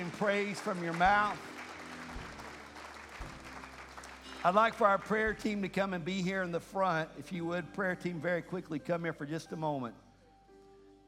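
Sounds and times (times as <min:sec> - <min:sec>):
audience clapping hands in praise: 0:00.0 - 0:05.7
speech: 0:00.1 - 0:01.5, 0:04.4 - 0:10.0.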